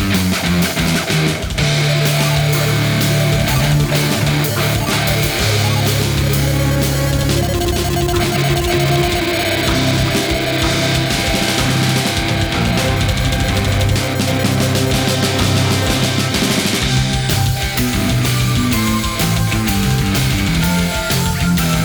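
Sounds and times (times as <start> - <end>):
music: 0.0 - 21.8.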